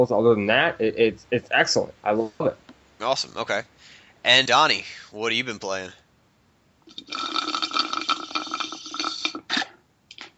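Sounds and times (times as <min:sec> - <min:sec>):
speech: 0:00.0 - 0:06.0, 0:06.9 - 0:07.5
slurping a drink through a straw: 0:06.9 - 0:09.8.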